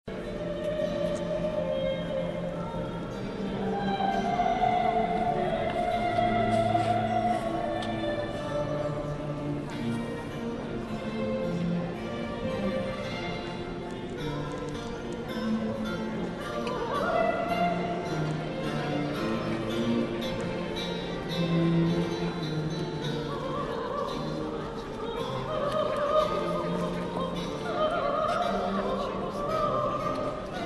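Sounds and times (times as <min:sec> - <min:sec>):
opera rehearsal at Peterborough Cathedral in the UK: 0:00.1 - 0:30.6.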